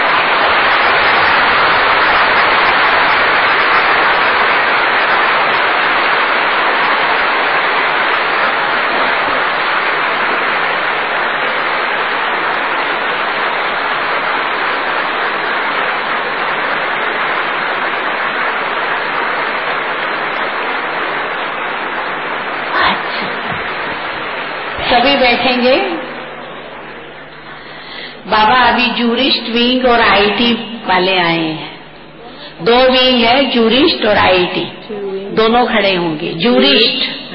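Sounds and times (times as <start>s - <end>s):
large crowd clapping: 0.0s - 28.1s
speech: 28.8s - 31.6s, 32.6s - 37.2s.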